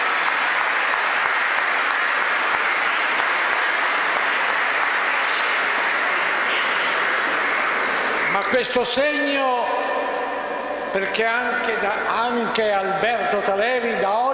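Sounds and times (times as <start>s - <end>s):
applause: 0.0s - 8.3s
speech: 8.5s - 10.1s, 10.9s - 14.3s.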